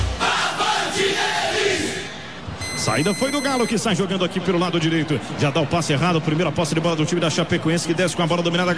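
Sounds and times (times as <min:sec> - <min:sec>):
football crowd chanting in stadium: 0:00.2 - 0:02.3
speech: 0:03.0 - 0:08.7.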